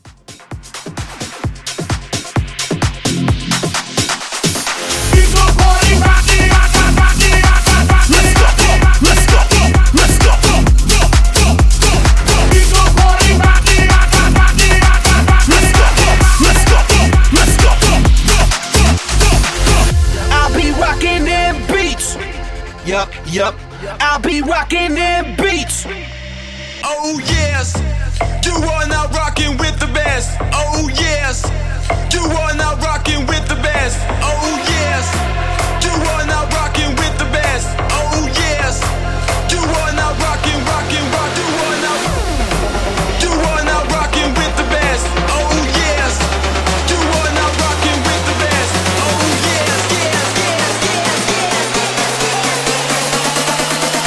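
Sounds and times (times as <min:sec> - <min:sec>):
festival hype dance music edit: 0:00.0 - 0:54.0.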